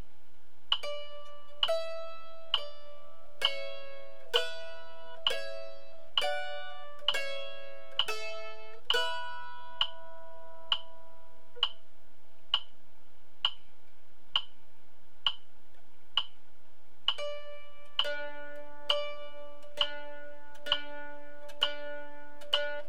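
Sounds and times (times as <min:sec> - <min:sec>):
mandolin playing a folk tune: 0:00.8 - 0:11.6, 0:17.2 - 0:22.8.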